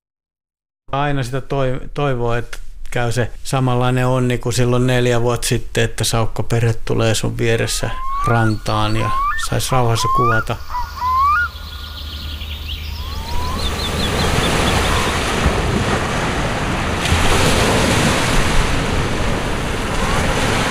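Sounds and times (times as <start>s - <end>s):
speech: 0.9s - 10.8s
faint high bird-like chirps: 7.7s - 15.3s
waves breaking on a sandy beach on a rainy, windy day: 7.9s - 20.6s.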